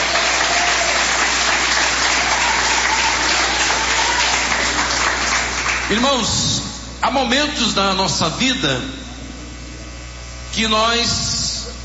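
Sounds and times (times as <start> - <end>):
audience applause: 0.0 - 6.1
speech: 5.9 - 9.0, 10.6 - 11.4.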